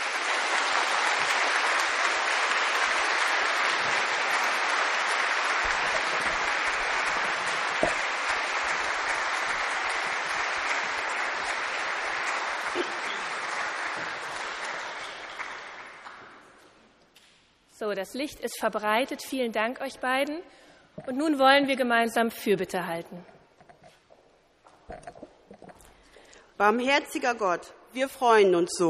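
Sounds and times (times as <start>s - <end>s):
audience applause: 0.0s - 16.6s
speech: 17.9s - 23.3s, 26.6s - 28.8s.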